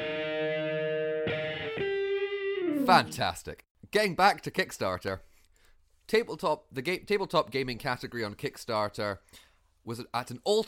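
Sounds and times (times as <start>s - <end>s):
electric guitar riff: 0.0s - 3.3s
speech: 2.9s - 5.3s, 6.1s - 10.6s.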